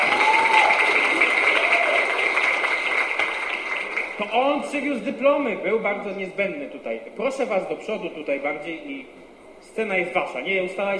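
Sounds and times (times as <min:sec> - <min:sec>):
audience applause: 0:00.0 - 0:04.3
speech: 0:04.2 - 0:10.9.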